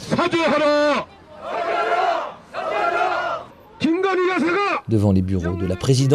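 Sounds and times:
speech: 0.2 - 1.6, 4.1 - 6.1
protesting dog-meat farmers chanting slogans: 1.2 - 3.6.

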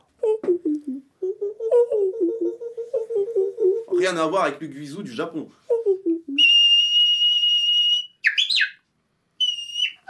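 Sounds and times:
person imitating a Senegal coucal call: 0.2 - 4.0, 5.7 - 8.6, 9.4 - 10.0
speech: 4.0 - 5.6.

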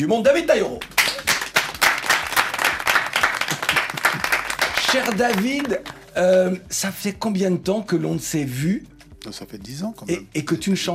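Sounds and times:
speech: 0.0 - 1.0, 4.9 - 10.9
audience applause: 1.0 - 6.0.

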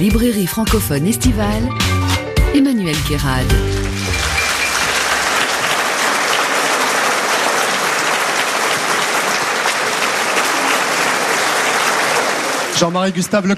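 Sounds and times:
speech: 0.1 - 4.0, 12.8 - 13.5
audience applause in an opera house: 3.5 - 13.5.

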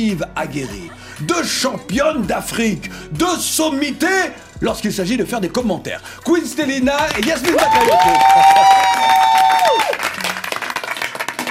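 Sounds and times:
speech: 0.0 - 9.9
studio guests applauding: 6.9 - 11.4.

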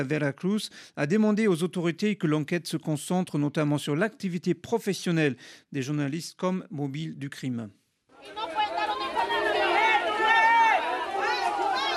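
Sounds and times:
speech: 0.0 - 8.6
families of detainees crying out in protest outside the Bella Vista prison gate: 8.2 - 11.9.

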